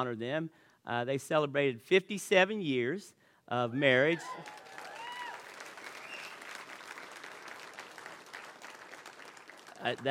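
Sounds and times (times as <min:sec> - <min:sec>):
speech: 0:00.0 - 0:04.8, 0:09.8 - 0:10.1
audience applause: 0:04.1 - 0:10.1.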